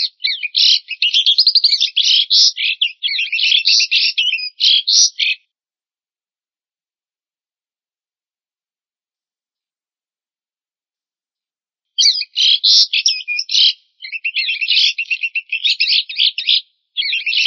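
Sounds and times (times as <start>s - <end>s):
black-winged starling calling: 0.0s - 5.4s, 12.0s - 17.4s.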